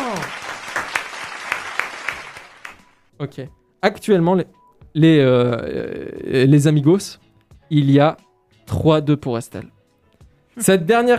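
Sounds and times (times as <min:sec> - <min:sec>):
applause: 0:00.0 - 0:03.1
speech: 0:03.2 - 0:09.7, 0:10.6 - 0:11.1.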